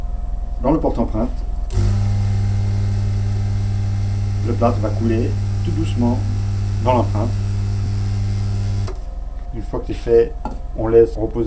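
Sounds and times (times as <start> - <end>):
speech: 0.6 - 1.8, 4.4 - 7.4, 9.5 - 11.4
dental plaster vibrator running with low-pitched buzz: 1.6 - 9.4.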